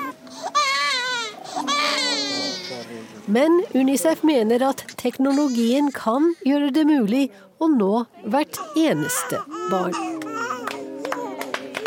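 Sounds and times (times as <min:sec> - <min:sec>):
baby crying after vaccination: 0:00.0 - 0:02.8, 0:05.2 - 0:06.7, 0:08.5 - 0:11.5
speech: 0:03.3 - 0:10.1.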